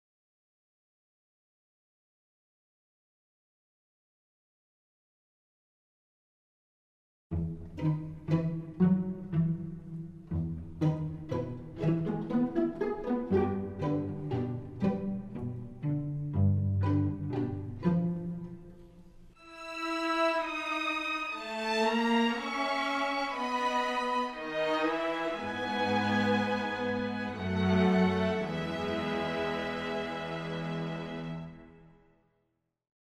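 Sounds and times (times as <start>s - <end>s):
music: 7.3s - 32.6s.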